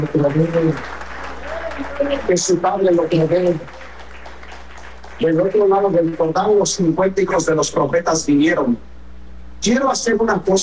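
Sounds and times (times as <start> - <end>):
speech: 0.0 - 1.0, 1.8 - 3.8, 5.2 - 8.9, 9.6 - 10.6
audience clapping: 0.0 - 7.0.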